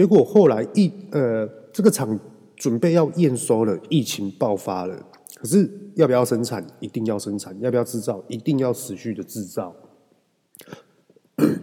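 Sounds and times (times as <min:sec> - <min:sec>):
speech: 0:00.0 - 0:09.9, 0:10.6 - 0:10.8, 0:11.4 - 0:11.6
person coughing: 0:10.6 - 0:11.6.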